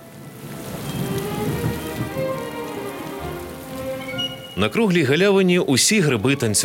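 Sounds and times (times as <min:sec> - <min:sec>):
heavy rain pattering on surfaces: 0:00.0 - 0:06.6
thunder rumble: 0:00.4 - 0:04.8
speech: 0:04.6 - 0:06.6.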